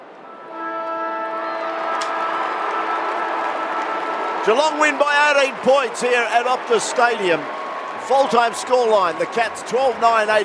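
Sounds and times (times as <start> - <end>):
full-time siren at stadium: 0.0 - 10.4
speech: 4.4 - 10.4.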